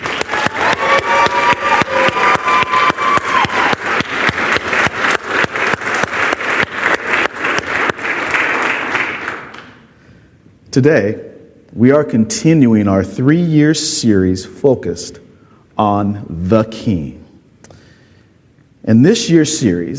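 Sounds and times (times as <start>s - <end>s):
church audience applauding: 0.0s - 9.8s
speech: 10.8s - 15.2s, 15.8s - 17.2s, 18.8s - 19.9s.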